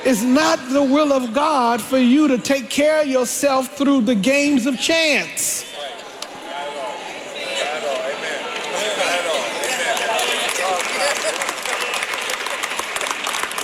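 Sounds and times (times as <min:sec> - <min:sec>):
speech: 0:00.0 - 0:06.0
audience clapping: 0:08.0 - 0:13.6.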